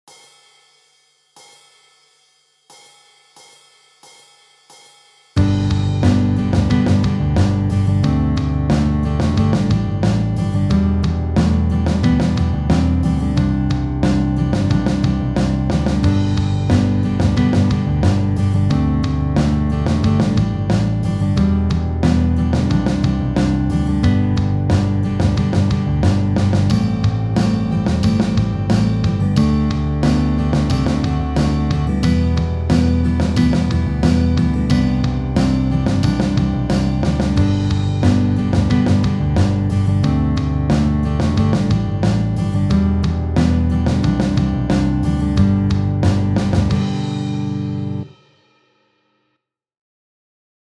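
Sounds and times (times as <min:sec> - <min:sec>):
German folk song with guitar: 0:05.4 - 0:48.0.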